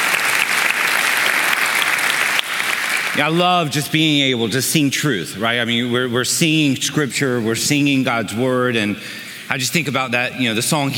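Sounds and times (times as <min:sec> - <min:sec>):
audience applause: 0:00.0 - 0:03.3
speech: 0:03.2 - 0:10.9.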